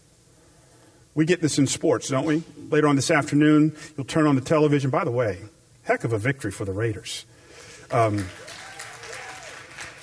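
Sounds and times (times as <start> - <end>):
speech: 1.2 - 7.3, 7.9 - 8.5
scattered audience applause: 7.9 - 10.0.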